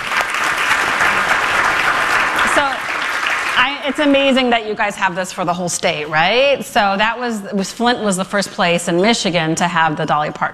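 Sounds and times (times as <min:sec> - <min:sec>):
audience applause: 0:00.0 - 0:04.5
speech: 0:03.9 - 0:10.5.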